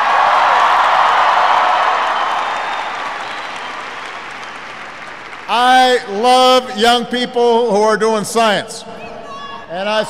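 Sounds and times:
audience applause: 0:00.0 - 0:06.1
speech: 0:05.6 - 0:08.9, 0:09.7 - 0:10.0.

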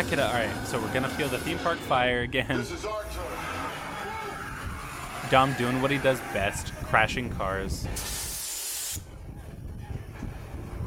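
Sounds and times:
speech: 0:00.0 - 0:03.5, 0:05.3 - 0:08.2
wind blasting into a bus: 0:04.3 - 0:10.8.

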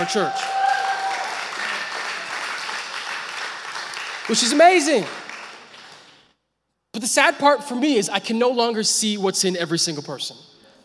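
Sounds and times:
speech: 0:00.0 - 0:00.5, 0:04.3 - 0:05.2, 0:07.0 - 0:10.5
crowd applause: 0:00.0 - 0:06.2.

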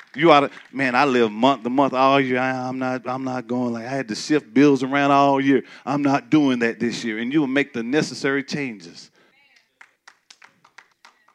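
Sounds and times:
audience rhythmic clapping: 0:00.0 - 0:02.4, 0:09.5 - 0:11.3
speech: 0:00.1 - 0:09.1.

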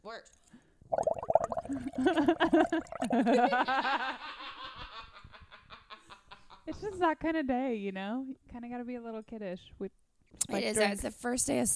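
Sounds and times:
speech: 0:00.1 - 0:01.1, 0:01.7 - 0:04.6, 0:06.6 - 0:11.7
blowing bubbles through a straw into a drink: 0:00.9 - 0:03.3
laughter: 0:02.0 - 0:06.6.

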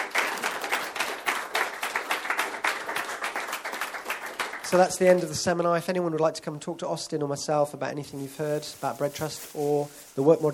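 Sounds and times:
audience applause after a seminar: 0:00.0 - 0:05.0
speech: 0:04.7 - 0:10.5.

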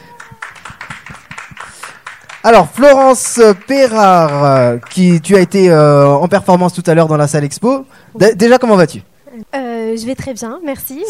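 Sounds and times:
audience applause: 0:00.0 - 0:06.1
speech: 0:02.4 - 0:11.0.

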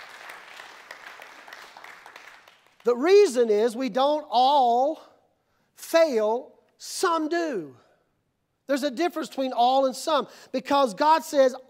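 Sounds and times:
audience hand clapping: 0:00.0 - 0:02.9
speech: 0:02.8 - 0:05.1, 0:05.9 - 0:07.8, 0:08.7 - 0:11.6.

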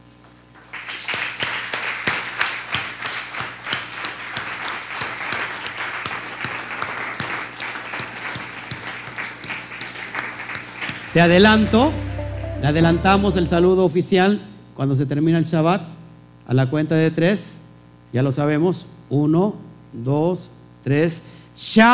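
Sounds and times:
audience applause: 0:00.6 - 0:11.2
speech: 0:11.1 - 0:12.0, 0:12.6 - 0:15.9, 0:16.5 - 0:21.9.

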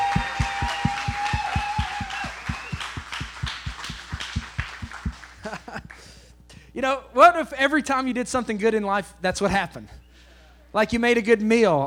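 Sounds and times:
audience applause and cheering: 0:00.0 - 0:05.6
speech: 0:06.8 - 0:10.0, 0:10.7 - 0:11.8.

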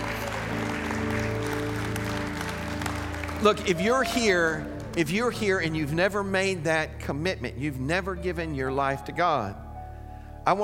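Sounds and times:
audience hand clapping: 0:00.0 - 0:06.1
speech: 0:03.4 - 0:09.6, 0:10.4 - 0:10.6.

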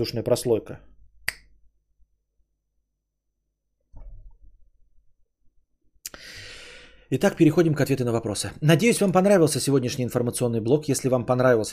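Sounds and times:
speech: 0:00.0 - 0:00.9, 0:07.1 - 0:11.7
finger snap: 0:01.2 - 0:01.6.

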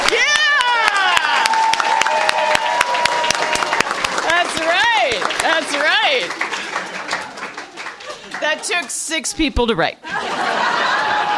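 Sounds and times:
people cheering: 0:00.0 - 0:08.9, 0:10.1 - 0:11.3
slow clap speeding up into applause: 0:00.0 - 0:08.9
laughter: 0:05.4 - 0:08.9, 0:10.0 - 0:11.3
speech: 0:08.6 - 0:10.5.

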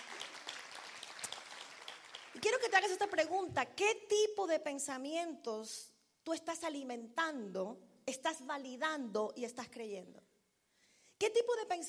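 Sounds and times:
crowd applauding: 0:00.0 - 0:02.5
speech: 0:02.4 - 0:10.3, 0:11.2 - 0:11.8.

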